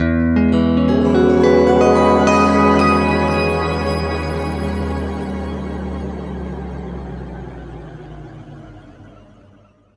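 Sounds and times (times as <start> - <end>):
guitar chords in E: 0.0 - 6.8.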